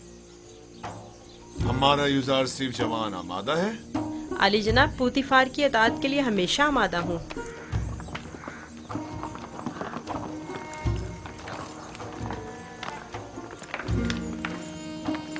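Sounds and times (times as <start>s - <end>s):
speech: 0.8s - 7.6s
hooves of a horse pulling a buggy clip-clopping: 6.6s - 15.3s.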